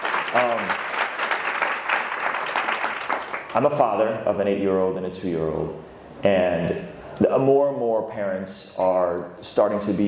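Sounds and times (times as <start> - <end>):
audience applause: 0.0 - 3.6
speech: 0.3 - 0.9, 3.6 - 10.0.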